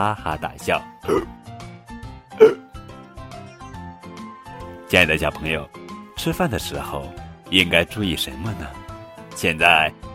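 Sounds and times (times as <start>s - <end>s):
speech: 0.0s - 1.6s, 4.9s - 8.8s, 9.4s - 10.1s
hiccups: 1.0s - 1.4s, 2.4s - 2.7s.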